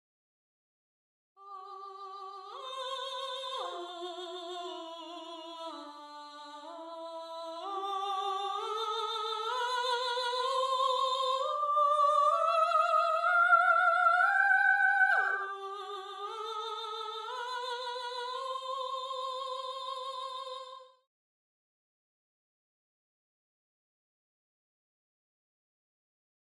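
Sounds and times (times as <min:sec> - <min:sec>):
soprano singing: 0:01.4 - 0:20.9.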